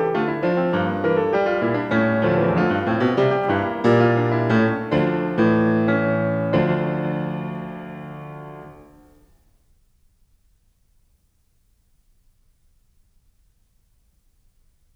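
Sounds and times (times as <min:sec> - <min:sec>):
keyboard suite: 0:00.1 - 0:09.1.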